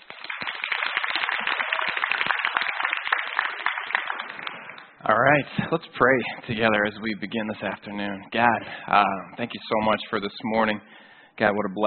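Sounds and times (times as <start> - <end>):
crowd applauding: 0.0 - 5.0
speech: 5.1 - 11.8.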